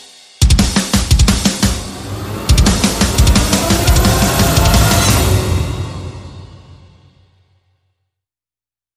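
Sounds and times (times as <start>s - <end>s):
percussion: 0.0s - 7.1s.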